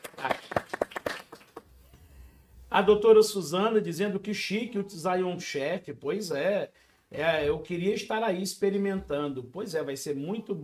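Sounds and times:
applause: 0.0s - 1.7s
speech: 2.8s - 10.6s.

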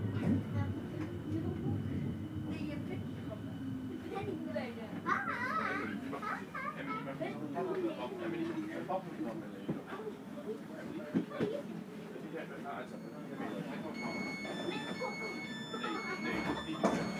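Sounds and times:
S-Bahn train rumble: 0.0s - 7.8s, 13.2s - 17.1s
voices chattering on an S-Bahn: 0.0s - 17.1s.

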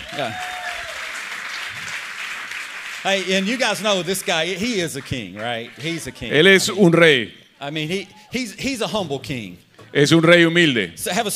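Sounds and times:
audience applause: 0.0s - 6.5s
speech: 0.2s - 0.5s, 3.0s - 11.3s.

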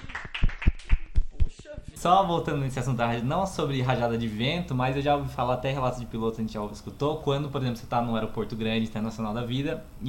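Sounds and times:
person clapping: 0.0s - 1.6s
speech: 2.0s - 10.0s.

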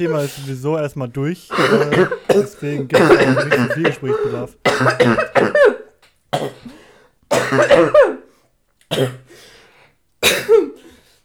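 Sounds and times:
speech: 0.0s - 5.6s
person coughing after choking: 1.5s - 8.3s, 8.9s - 9.3s, 10.2s - 11.0s.

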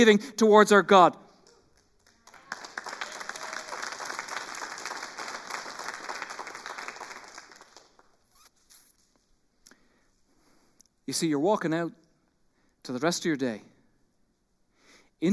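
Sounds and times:
speech: 0.0s - 1.2s, 11.1s - 12.0s, 12.8s - 13.7s
audience applauding: 1.4s - 8.4s.

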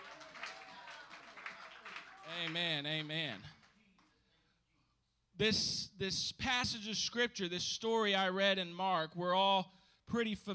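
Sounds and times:
audience hand clapping: 0.0s - 4.2s
speech: 2.3s - 3.6s, 5.4s - 10.5s.

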